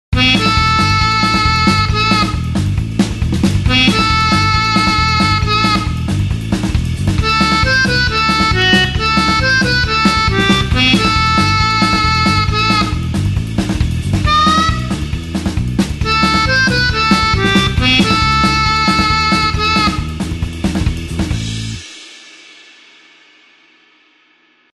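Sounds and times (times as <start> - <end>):
blues harp in A over an eight-beat rhythm: 0.2 - 21.8.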